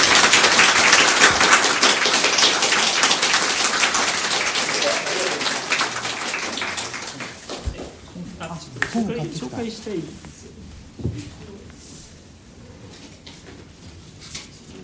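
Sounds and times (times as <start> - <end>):
audience applause: 0.0 - 8.0
speech: 9.0 - 10.3.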